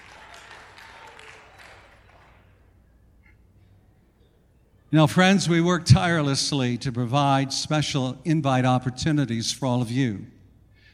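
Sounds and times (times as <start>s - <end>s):
group applause: 0.0s - 2.7s
speech: 4.9s - 10.4s.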